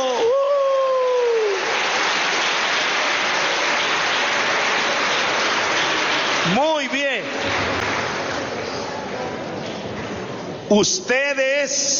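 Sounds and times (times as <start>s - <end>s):
audience applause: 0.0s - 9.4s
speech: 10.7s - 11.9s.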